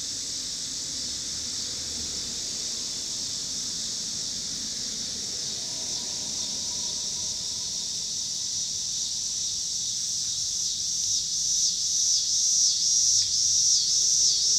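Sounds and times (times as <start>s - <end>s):
cars in Pittsburgh PA: 0.0s - 9.4s
cicadas in Pittsburgh PA: 0.0s - 14.5s.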